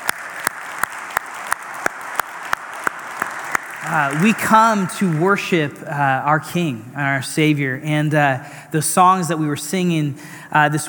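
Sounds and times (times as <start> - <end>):
audience applauding worship team: 0.0 - 5.5
speech: 3.8 - 10.8.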